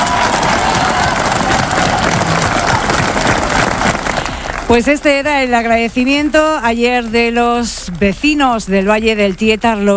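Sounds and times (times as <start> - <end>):
cheering from evacuated residents: 0.0 - 4.9
applause from evacuated residents: 0.0 - 5.4
speech: 4.7 - 9.9.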